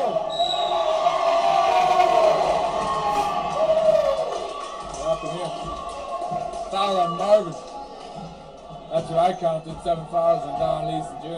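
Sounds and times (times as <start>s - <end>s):
basketball arena crowd cheering: 0.0s - 8.3s
speech: 9.0s - 11.3s.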